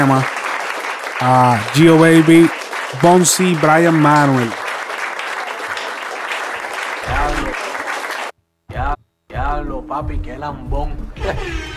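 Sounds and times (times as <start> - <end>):
person's voice: 0.0 - 0.3, 1.2 - 4.6, 7.1 - 7.6
speech: 0.0 - 0.4, 1.2 - 4.6, 10.0 - 11.7
crowd applauding a band of young performers: 0.0 - 8.3.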